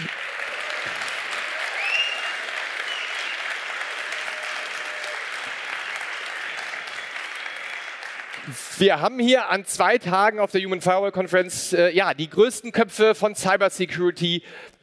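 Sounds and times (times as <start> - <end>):
live conference audience applause: 0.0 - 9.2
speech: 8.5 - 14.8.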